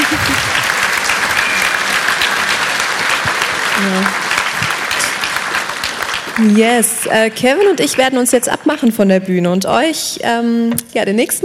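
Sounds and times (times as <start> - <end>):
audience applause: 0.0 - 7.9
speech: 3.8 - 4.2, 6.4 - 11.4.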